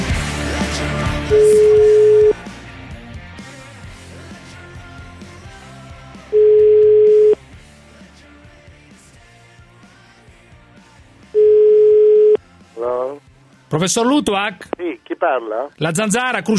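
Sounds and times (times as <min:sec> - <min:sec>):
music: 0:00.0 - 0:16.5
speech: 0:00.8 - 0:01.6, 0:13.8 - 0:16.5
telephone ringback tone while a call is placed: 0:01.3 - 0:02.4, 0:06.3 - 0:07.4, 0:11.4 - 0:12.4.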